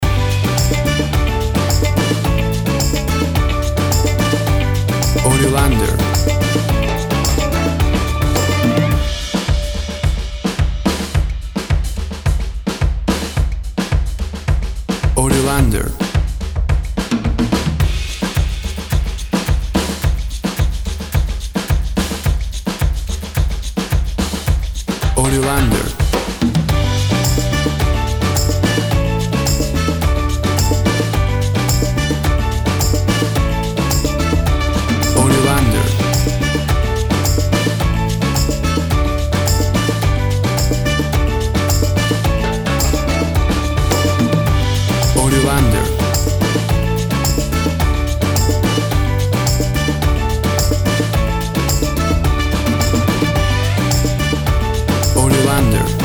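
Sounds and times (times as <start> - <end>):
upbeat uptempo calypso summer music: 0.0 - 56.0.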